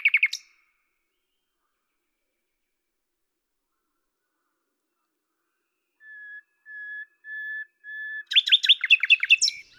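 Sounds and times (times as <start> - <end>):
common nightingale singing whistles: 6.0 - 9.7.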